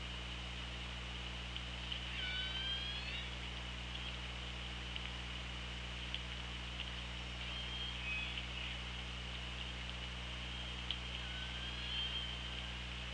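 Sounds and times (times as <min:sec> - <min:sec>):
continuous low hum and hiss: 0:00.0 - 0:13.1
killer whale call of drawn-out tonal squeal: 0:02.1 - 0:03.3, 0:07.4 - 0:08.8, 0:11.1 - 0:12.7.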